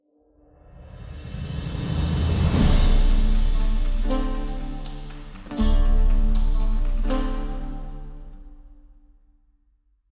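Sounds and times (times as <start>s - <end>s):
race outro music: 2.6s - 8.8s.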